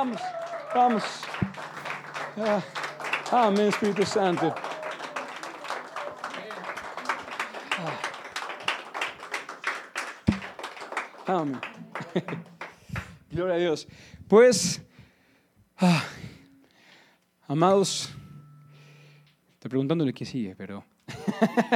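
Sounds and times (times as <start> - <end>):
speech: 0.0 - 1.6, 2.4 - 4.7, 11.3 - 12.5, 13.3 - 14.9, 15.8 - 16.0, 17.5 - 18.2, 19.7 - 21.7
laughter: 0.0 - 8.7, 11.3 - 12.7, 21.1 - 21.7
audience applauding: 0.0 - 13.2.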